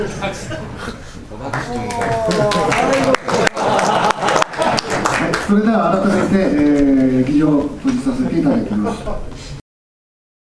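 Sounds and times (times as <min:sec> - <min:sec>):
speech: 0:00.0 - 0:03.2
laughter: 0:00.0 - 0:06.6, 0:07.9 - 0:09.4
applause in assembly hall: 0:01.5 - 0:05.6.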